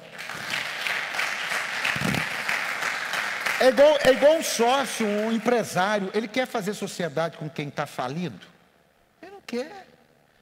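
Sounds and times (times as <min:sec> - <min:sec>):
audience applause: 0:00.0 - 0:05.6
speech: 0:03.6 - 0:08.5, 0:09.5 - 0:09.9.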